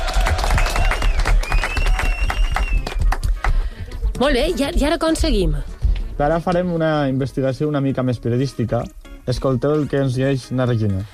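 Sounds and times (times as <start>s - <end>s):
group applauding: 0.0s - 3.9s
speech: 4.2s - 11.1s.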